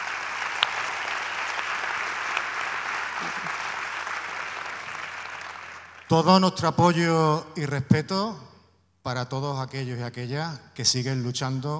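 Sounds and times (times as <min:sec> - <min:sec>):
audience applause: 0:00.0 - 0:06.1
speech: 0:06.1 - 0:11.7.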